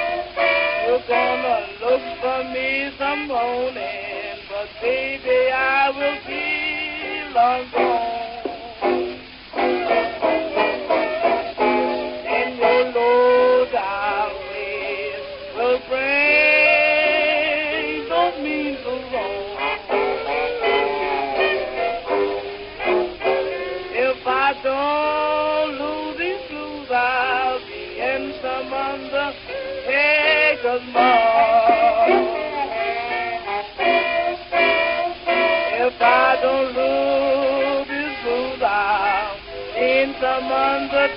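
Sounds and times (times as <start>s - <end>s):
blues music: 0.0s - 41.1s.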